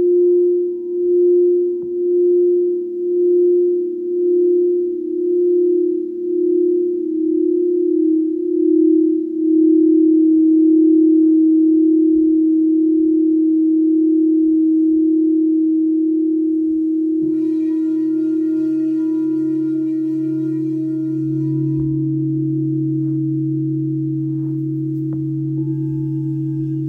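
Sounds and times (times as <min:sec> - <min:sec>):
crystal singing bowls humming: 0:00.0 - 0:26.8.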